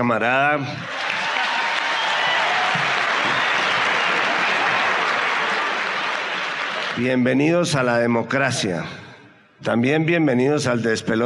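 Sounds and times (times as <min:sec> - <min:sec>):
speech: 0:00.0 - 0:01.0, 0:07.0 - 0:09.0, 0:09.6 - 0:11.2
audience ovation applause: 0:00.8 - 0:07.2.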